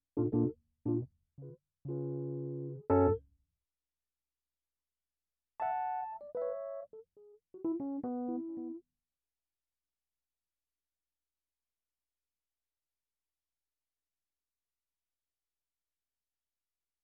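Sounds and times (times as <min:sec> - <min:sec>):
keyboard music: 0:00.2 - 0:03.2, 0:05.6 - 0:08.8.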